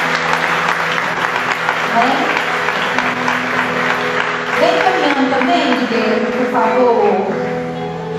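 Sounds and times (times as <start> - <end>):
audience applause: 0.0 - 8.0
speech: 2.0 - 2.4, 4.6 - 7.4.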